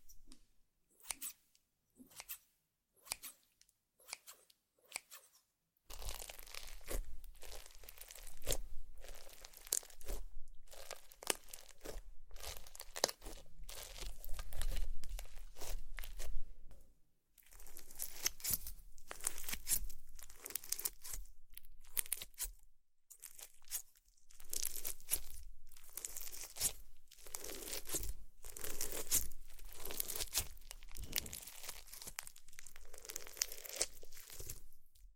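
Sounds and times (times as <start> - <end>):
ASMR slime squishing and crackling: 5.9 - 16.4, 17.4 - 22.5, 23.2 - 35.1.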